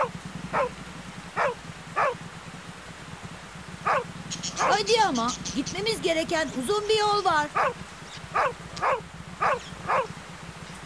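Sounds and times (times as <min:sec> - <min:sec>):
dog barking: 0:00.0 - 0:00.7, 0:01.4 - 0:02.2, 0:03.8 - 0:04.9, 0:07.6 - 0:10.1
speech: 0:04.7 - 0:09.0.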